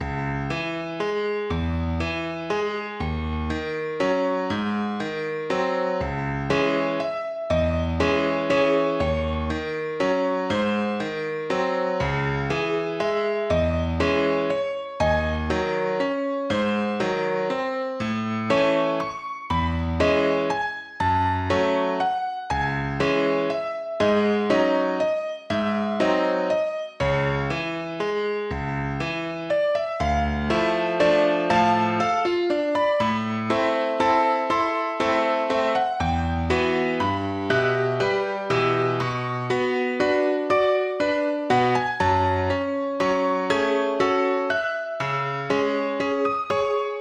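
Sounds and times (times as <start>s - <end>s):
sorrowful waltz music: 0.0s - 46.9s.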